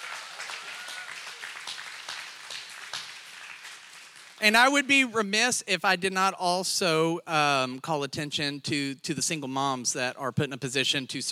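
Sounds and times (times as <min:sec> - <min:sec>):
crowd applauding: 0:00.0 - 0:05.0
speech: 0:04.4 - 0:11.3.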